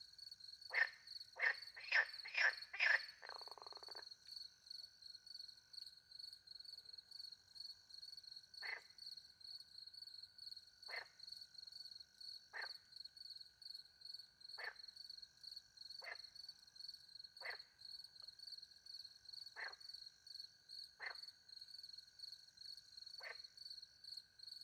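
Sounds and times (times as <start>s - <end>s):
crickets chirping: 0.0s - 24.6s
frog croaking: 0.7s - 4.1s, 8.6s - 9.0s, 10.9s - 11.2s, 12.5s - 12.8s, 14.6s - 14.8s, 16.0s - 16.4s, 17.4s - 17.8s, 19.5s - 19.9s, 21.0s - 21.4s, 23.1s - 23.6s.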